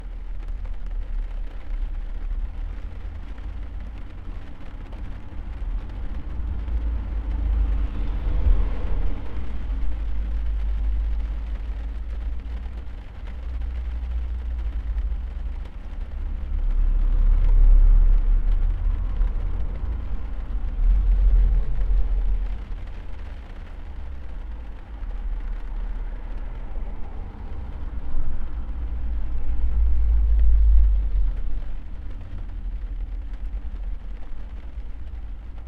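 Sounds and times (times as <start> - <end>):
rain heard from a car: 0.0 - 35.6.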